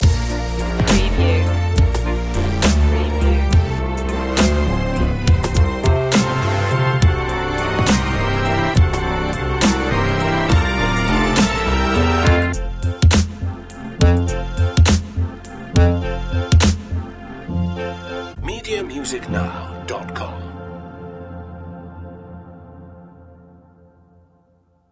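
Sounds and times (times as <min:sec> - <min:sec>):
dubstep remix of a waltz: 0:00.0 - 0:17.7.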